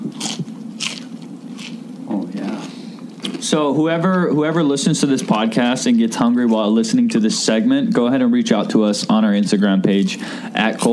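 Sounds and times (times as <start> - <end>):
biting into crunchy fried chicken: 0.0 - 3.5, 10.2 - 10.9
low murmur: 0.0 - 10.9
soft chewing: 0.0 - 10.9
speech: 3.4 - 10.9.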